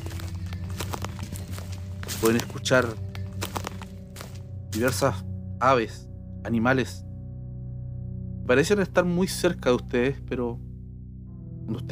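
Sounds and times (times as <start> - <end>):
twigs crunching underfoot in a forest: 0.0 - 5.2
speech: 2.2 - 3.1, 4.8 - 7.0, 8.5 - 10.7, 11.7 - 11.9.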